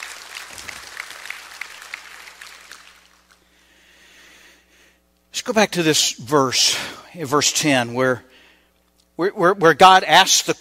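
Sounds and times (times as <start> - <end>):
audience clapping in praise: 0.0 - 3.4
speech: 5.5 - 8.4, 9.2 - 10.5.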